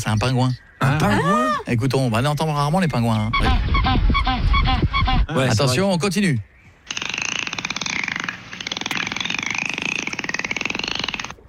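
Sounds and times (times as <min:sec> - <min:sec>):
speech: 0:00.0 - 0:06.5
dolphin buzzing clicks: 0:06.9 - 0:11.4.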